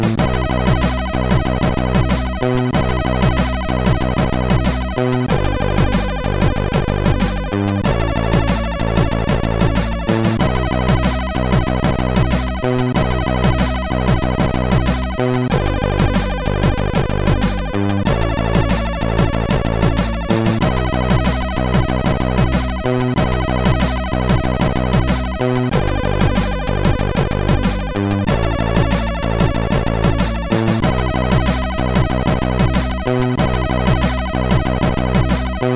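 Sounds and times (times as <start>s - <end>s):
MOS6581R4 SID chip game music: 0.1s - 35.7s.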